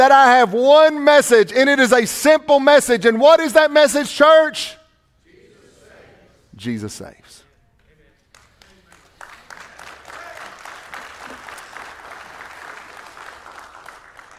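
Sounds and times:
speech: 0.0 - 4.8, 6.6 - 7.4
audience applause: 8.3 - 14.3.

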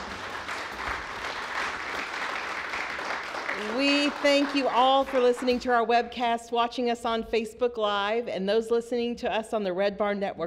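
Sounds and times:
studio audience at a live radio show applauding: 0.0 - 5.6
speech: 3.6 - 10.4.

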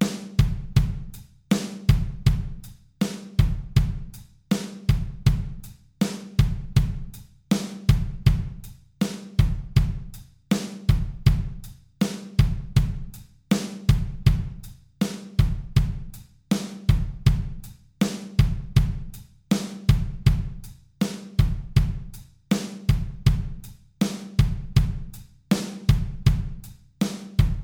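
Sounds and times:
drum beat: 0.0 - 27.6.

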